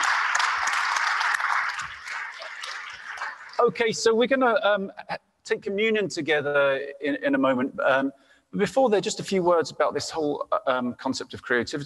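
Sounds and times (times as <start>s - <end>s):
audience applause: 0.0s - 3.8s
speech: 3.6s - 11.8s.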